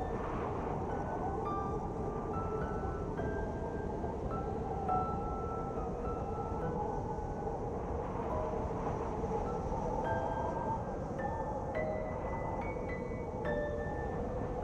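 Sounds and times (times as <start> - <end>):
soft relaxing music: 0.0 - 14.6
winter blizzard: 0.0 - 14.6.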